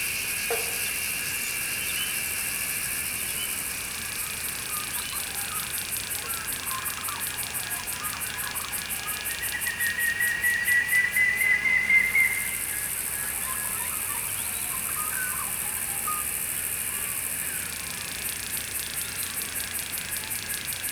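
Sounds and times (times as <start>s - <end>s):
cicada buzzing: 0.0s - 20.8s.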